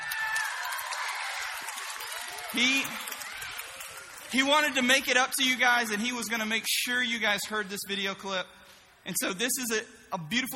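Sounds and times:
audience applause: 0:00.0 - 0:05.5
speech: 0:02.5 - 0:03.1, 0:04.3 - 0:10.5.

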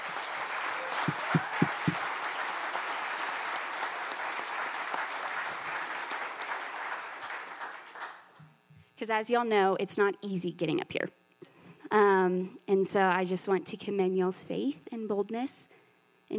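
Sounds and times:
audience round of applause: 0:00.0 - 0:08.4
speech: 0:09.0 - 0:11.2, 0:12.2 - 0:16.3.

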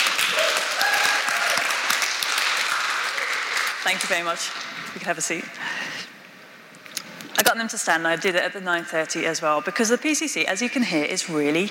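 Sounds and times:
audience applause: 0:00.0 - 0:04.8
speech: 0:03.9 - 0:06.1, 0:07.4 - 0:11.6.

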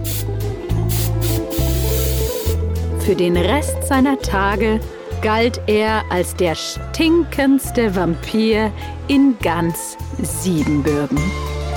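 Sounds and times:
perfume being sprayed in hissing bursts: 0:00.0 - 0:02.6
speech: 0:03.1 - 0:11.4.

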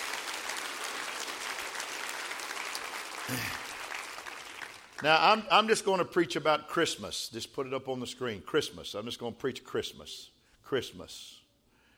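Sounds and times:
crowd applauding: 0:00.0 - 0:05.1
speech: 0:03.3 - 0:03.6, 0:05.0 - 0:11.4
person cheering: 0:03.3 - 0:03.7.

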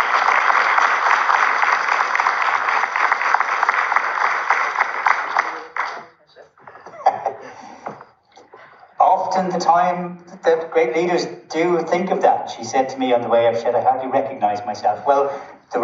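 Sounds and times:
audience round of applause: 0:00.0 - 0:06.1
laughter: 0:06.6 - 0:08.0
speech: 0:09.6 - 0:15.8.

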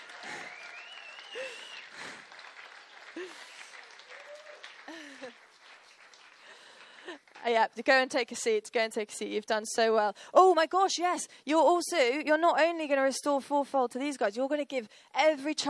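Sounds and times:
audience applause: 0:00.0 - 0:07.4
speech: 0:07.5 - 0:15.6.

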